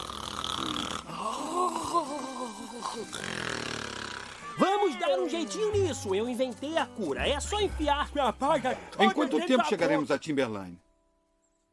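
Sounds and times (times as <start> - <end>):
person imitating snoring: 0.0 - 2.3, 2.9 - 4.6
steady noise: 0.0 - 11.7
laughter: 1.4 - 3.2, 4.4 - 6.2, 7.6 - 10.1
speech: 4.6 - 10.8.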